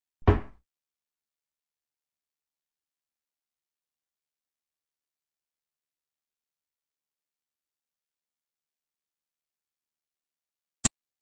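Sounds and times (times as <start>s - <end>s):
doors: 0.0s - 0.6s.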